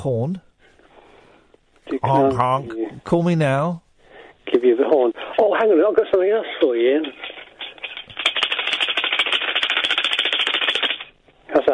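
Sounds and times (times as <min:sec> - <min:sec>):
speech: 0:00.0 - 0:00.5, 0:02.0 - 0:03.8, 0:04.5 - 0:07.2
tambourine being shaken: 0:07.0 - 0:11.2.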